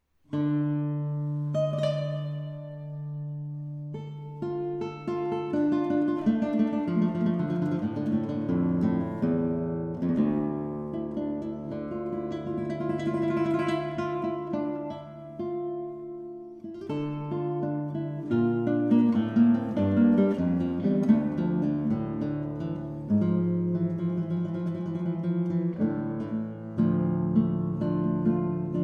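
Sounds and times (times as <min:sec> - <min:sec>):
guitar solo: 0:00.3 - 0:28.8.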